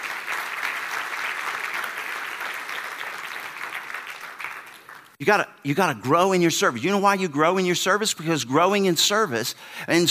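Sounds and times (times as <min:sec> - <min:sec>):
crowd applause: 0:00.0 - 0:05.2
speech: 0:05.2 - 0:10.1.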